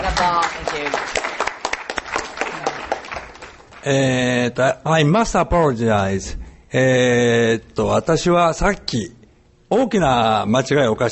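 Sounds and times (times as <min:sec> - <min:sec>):
audience applause: 0:00.0 - 0:03.8
speech: 0:03.8 - 0:11.1.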